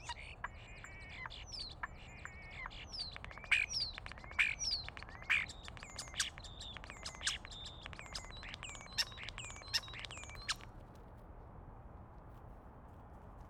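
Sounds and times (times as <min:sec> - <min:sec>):
starling: 0:00.0 - 0:10.7.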